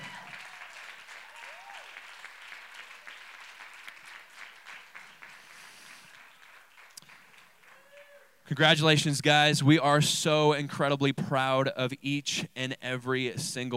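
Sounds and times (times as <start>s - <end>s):
church congregation applauding in praise: 0.0s - 8.3s
speech: 8.5s - 13.7s.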